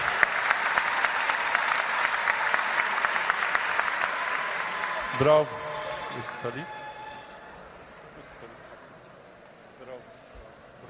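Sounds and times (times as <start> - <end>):
audience applause for two girls: 0.0 - 7.2
speech: 5.2 - 6.8.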